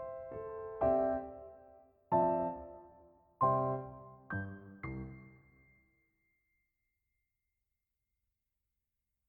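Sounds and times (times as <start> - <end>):
piano: 0.0 - 6.1.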